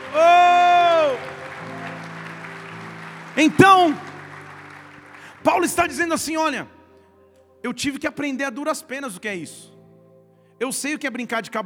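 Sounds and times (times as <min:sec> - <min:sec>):
audience applause: 0:00.0 - 0:06.2
speech: 0:03.4 - 0:04.1, 0:05.4 - 0:06.8, 0:07.6 - 0:09.7, 0:10.6 - 0:11.6.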